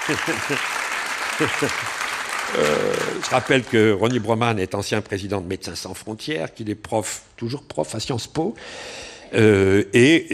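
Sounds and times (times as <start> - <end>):
audience applause: 0.0 - 4.0
speech: 0.1 - 0.8, 1.4 - 10.3.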